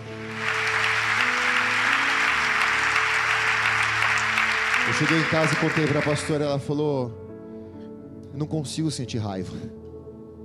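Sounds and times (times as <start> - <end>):
audience applauding: 0.0 - 6.6
speech: 4.9 - 7.2, 8.4 - 9.8.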